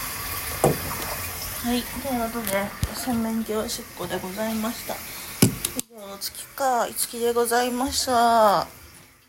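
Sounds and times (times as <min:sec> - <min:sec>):
dull knock: 0:00.6 - 0:01.1, 0:05.4 - 0:05.7
speech: 0:01.8 - 0:05.1, 0:06.6 - 0:08.8.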